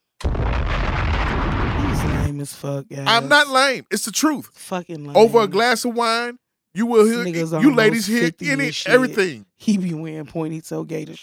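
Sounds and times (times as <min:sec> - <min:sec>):
bomb explosion sound effect: 0:00.2 - 0:02.3
speech: 0:02.4 - 0:11.2.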